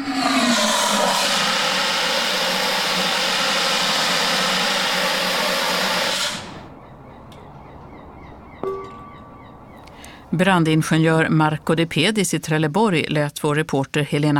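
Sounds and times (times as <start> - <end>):
carbon dioxide fire extinguisher spraying outdoors over asphalt: 0.0 - 6.7
metallic clank: 8.6 - 9.4
speech: 10.4 - 14.3.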